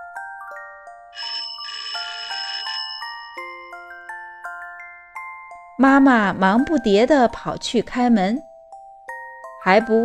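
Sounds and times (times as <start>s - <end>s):
doorbell ringing: 1.2s - 5.2s
speech: 5.8s - 8.5s, 9.6s - 10.0s.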